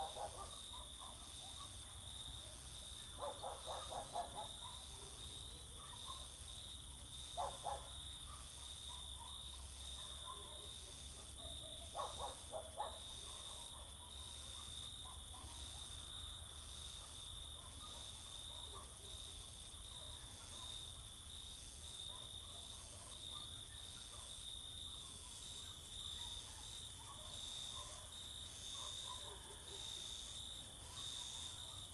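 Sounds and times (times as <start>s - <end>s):
dogs barking all around at night: 0.0s - 2.0s, 3.2s - 6.4s, 7.0s - 15.8s, 17.0s - 19.2s, 22.1s - 24.4s, 26.1s - 30.0s
crickets singing in summer fields at night: 0.0s - 31.9s.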